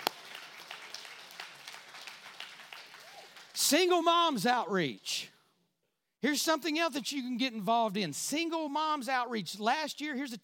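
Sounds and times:
audience clapping: 0.0 - 5.0
speech: 3.7 - 5.3, 6.2 - 10.4.

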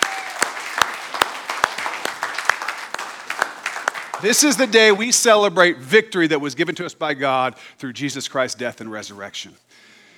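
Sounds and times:
audience clapping: 0.0 - 5.1
speech: 4.2 - 9.9.

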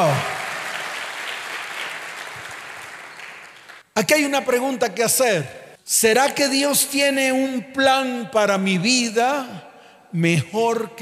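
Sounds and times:
speech: 0.0 - 0.3, 4.0 - 11.0
audience applause: 0.0 - 3.8.

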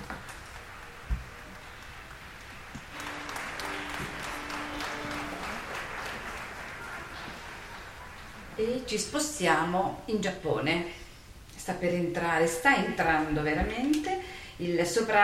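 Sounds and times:
audience applause: 0.0 - 9.0
speech: 8.6 - 11.0, 11.7 - 15.2.

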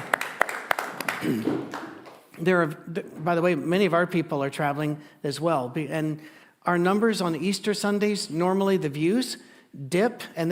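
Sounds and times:
scattered hand claps: 0.0 - 2.4
speech: 1.2 - 1.8, 2.4 - 10.5.

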